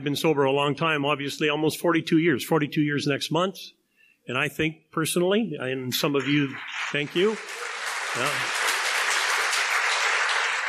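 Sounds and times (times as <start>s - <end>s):
speech: 0.0s - 8.6s
audience applause: 6.1s - 10.6s.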